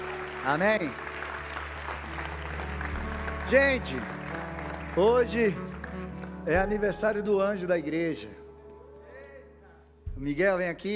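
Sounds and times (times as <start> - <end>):
audience applauding: 0.0 - 7.1
speech: 0.4 - 1.1, 3.5 - 4.2, 5.0 - 5.7, 6.4 - 8.4, 10.2 - 10.9.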